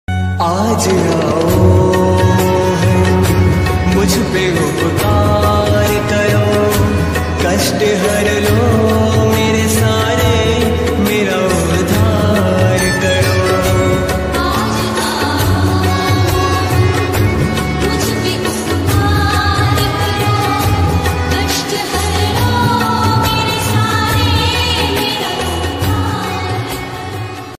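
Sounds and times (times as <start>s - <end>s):
Hindi devotional ringtone music: 0.1s - 27.5s.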